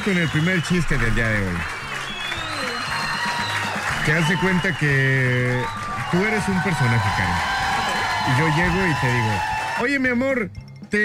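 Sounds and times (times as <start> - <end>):
speech: 0.0 - 1.8, 4.0 - 7.5, 8.2 - 11.0
recorded crowd applause and cheering: 0.0 - 10.2
high whistle-like tones: 1.8 - 9.8.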